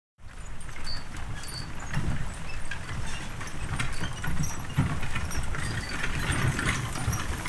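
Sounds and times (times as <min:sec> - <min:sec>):
horse-drawn wagon: 0:00.2 - 0:07.4.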